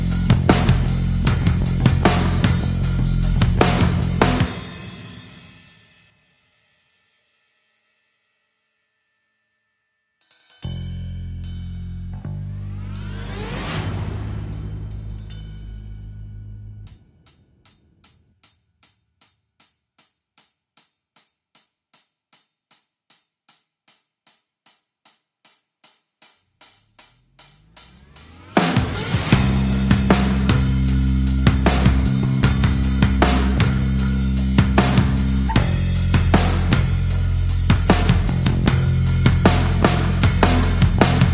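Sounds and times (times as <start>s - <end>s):
bass: 0.0s - 5.0s, 10.6s - 17.4s, 27.0s - 41.3s
drums: 0.0s - 8.1s, 10.2s - 41.3s.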